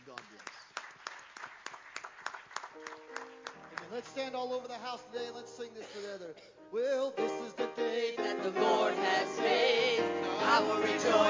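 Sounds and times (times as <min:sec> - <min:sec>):
audience clapping in appreciation: 0:00.0 - 0:04.7
speech: 0:03.9 - 0:11.2.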